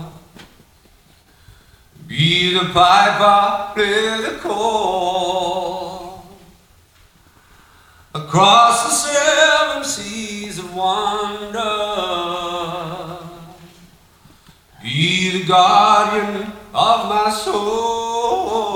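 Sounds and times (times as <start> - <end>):
live a cappella singing: 0.0 - 0.5, 2.0 - 6.6, 8.1 - 14.0, 14.8 - 18.7.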